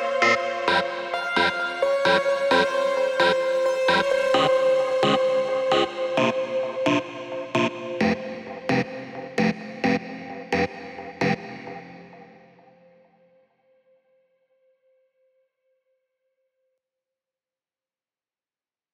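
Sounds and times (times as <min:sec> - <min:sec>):
synthesizers: 0:00.0 - 0:12.5.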